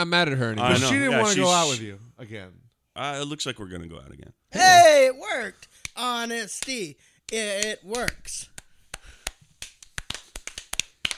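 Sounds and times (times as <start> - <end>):
speech: 0.0 - 8.5
a few people clapping on a show: 5.8 - 11.1.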